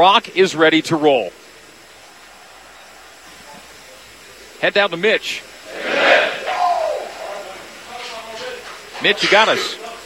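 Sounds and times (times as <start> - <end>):
speech: 0.0 - 1.4, 4.6 - 5.8, 9.0 - 9.8
loud stadium crowd: 1.7 - 4.6, 5.2 - 10.0.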